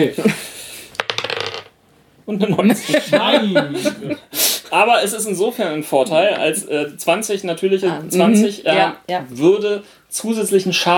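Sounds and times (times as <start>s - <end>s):
speech: 0.0s - 0.5s, 2.3s - 10.9s
dice being rolled: 1.0s - 1.8s
laughter: 2.5s - 4.3s.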